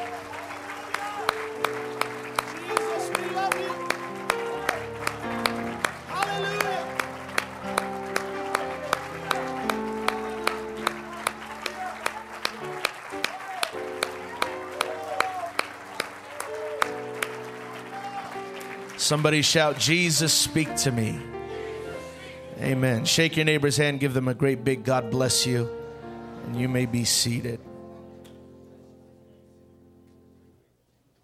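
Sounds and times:
audience clapping hands in a rhythmic beat: 0.0s - 20.9s
sustained keyboard chords: 0.0s - 30.7s
speech: 19.1s - 21.4s, 22.7s - 25.8s, 26.5s - 27.7s.

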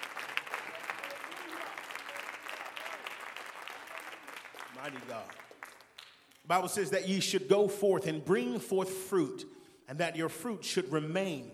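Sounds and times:
people clapping hands: 0.0s - 6.5s
speech: 4.8s - 5.4s, 6.5s - 11.5s.

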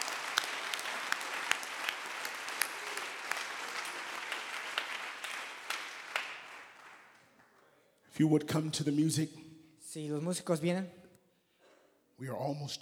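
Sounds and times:
audience clapping: 0.0s - 7.7s
speech: 8.2s - 9.4s, 10.0s - 11.0s, 12.2s - 12.7s.

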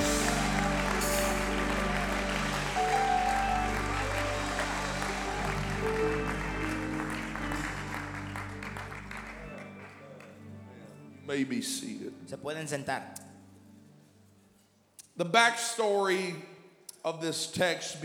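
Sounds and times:
audience shouting praise: 0.0s - 7.6s
audience clapping: 0.0s - 10.8s
speech: 11.3s - 13.2s, 15.2s - 18.0s.

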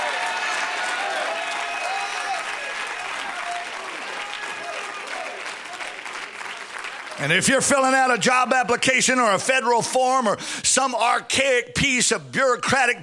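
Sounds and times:
audience shouting: 0.0s - 6.1s
audience clapping: 0.0s - 8.8s
speech: 7.2s - 13.0s.

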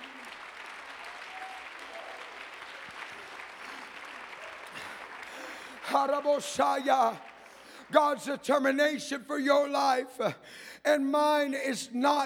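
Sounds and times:
audience clapping hands: 0.0s - 8.7s
speech: 5.9s - 7.3s, 7.9s - 12.2s.

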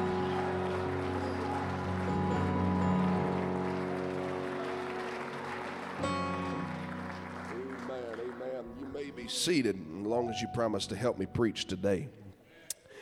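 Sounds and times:
audience shouting praise: 0.0s - 2.3s
audience clapping in praise: 0.0s - 9.8s
speech: 8.9s - 12.2s.

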